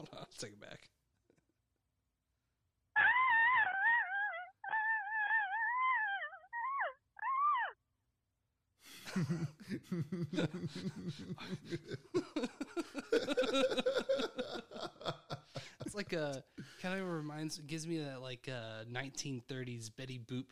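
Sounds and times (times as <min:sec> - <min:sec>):
speech: 0:00.0 - 0:01.0, 0:09.2 - 0:14.2, 0:16.0 - 0:20.5
retro-style scream in a voicemail: 0:03.0 - 0:07.8
laughter: 0:09.0 - 0:16.3.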